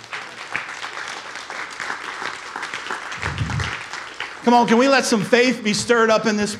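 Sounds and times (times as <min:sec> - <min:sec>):
audience applause: 0:00.0 - 0:05.0
speech: 0:04.4 - 0:06.5.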